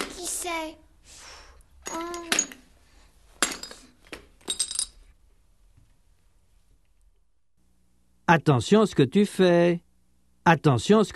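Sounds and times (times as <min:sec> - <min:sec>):
speech: 0:00.4 - 0:01.2, 0:01.9 - 0:02.6, 0:08.3 - 0:09.8, 0:10.4 - 0:11.1
objects dropped and clattering on the floor: 0:01.8 - 0:02.7, 0:03.3 - 0:05.0.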